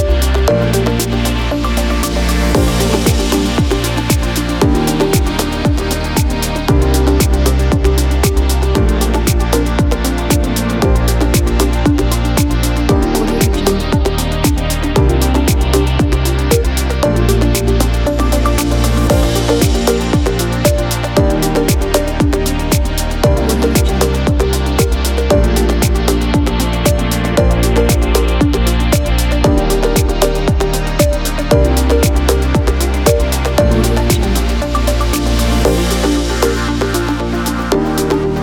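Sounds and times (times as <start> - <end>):
corporate music: 0.0 - 38.4.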